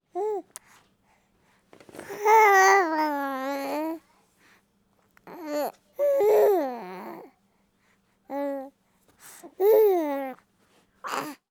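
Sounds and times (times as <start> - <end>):
baby babbling pleasantly: 2.1 - 4.0, 5.3 - 7.3, 9.6 - 10.4, 11.1 - 11.4.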